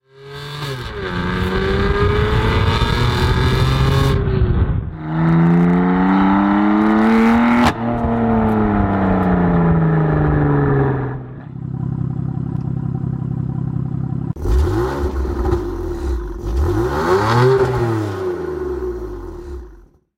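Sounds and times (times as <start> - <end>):
BMW M4 engine: 0.0 - 20.1.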